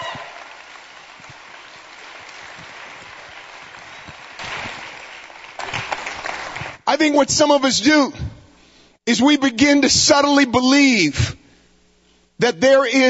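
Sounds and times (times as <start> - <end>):
crowd hand clapping: 0.0 - 6.9
speech: 7.0 - 8.2, 9.1 - 11.4, 12.4 - 13.0.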